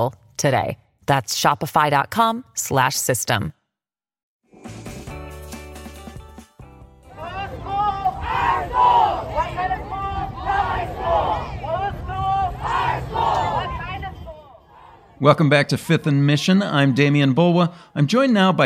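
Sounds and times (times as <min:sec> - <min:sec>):
speech: 0:00.0 - 0:03.6, 0:15.2 - 0:18.6
Oakland students, teachers and parents shouting and chanting in street protest: 0:07.1 - 0:15.4.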